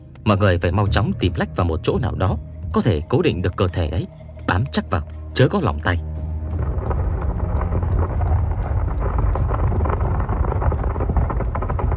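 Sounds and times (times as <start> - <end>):
speech: 0.3 - 6.1
sharp crackles: 6.2 - 11.9
thunder rumbling inside a mountain: 6.2 - 11.9.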